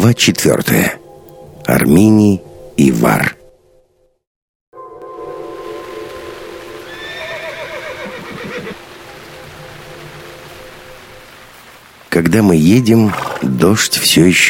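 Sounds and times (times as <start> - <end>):
speech: 0.0 - 1.0, 1.7 - 3.4, 12.2 - 14.4
horse whinnying: 6.9 - 8.8.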